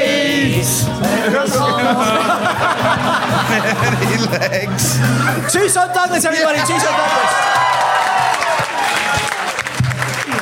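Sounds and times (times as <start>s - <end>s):
speech: 0.7s - 9.3s
laughter: 1.3s - 5.8s
audience applause: 6.6s - 10.3s.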